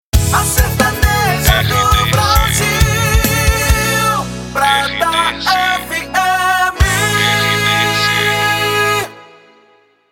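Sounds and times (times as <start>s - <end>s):
sertanejo music on radio: 0.2s - 9.4s.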